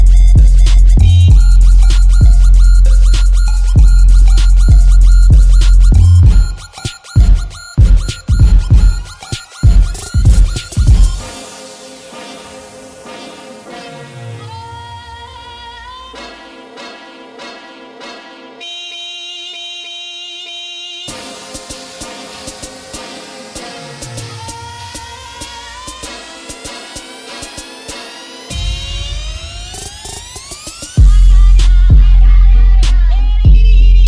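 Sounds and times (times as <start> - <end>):
boosted bass: 0.0 - 11.2, 28.5 - 34.0.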